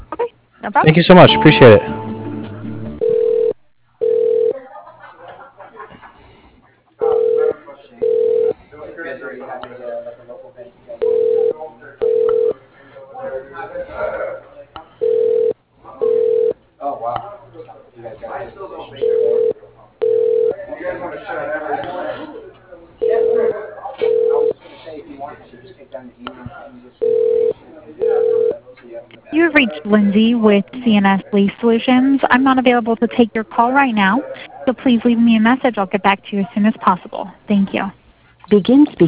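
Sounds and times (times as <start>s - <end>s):
continuous sound: 0.0s - 39.0s
speech: 0.2s - 2.0s, 31.7s - 39.0s
telephone ringback tone while a call is being transferred: 1.3s - 4.5s, 7.0s - 8.5s, 11.0s - 12.5s, 15.0s - 15.5s, 16.1s - 16.5s, 19.0s - 20.5s, 23.0s - 23.5s, 24.1s - 24.5s, 27.0s - 28.6s
laughter: 4.6s - 6.6s.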